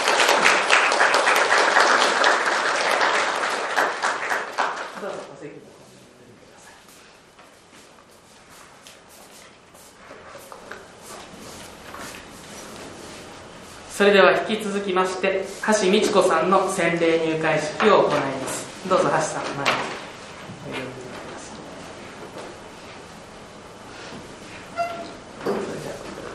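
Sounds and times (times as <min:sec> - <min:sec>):
audience applauding: 0:00.0 - 0:05.2
speech: 0:14.0 - 0:20.0.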